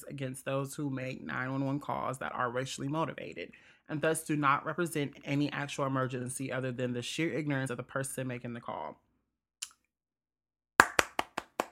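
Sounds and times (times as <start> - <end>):
speech: 0.0 - 9.0
clapping: 10.8 - 11.7.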